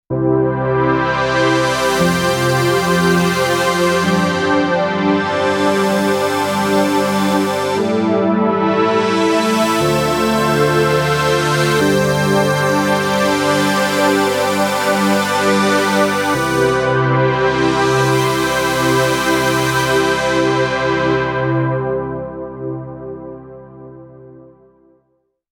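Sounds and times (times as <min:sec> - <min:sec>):
Modal Electronics Cobalt5s synthesizer: 0:00.1 - 0:25.0.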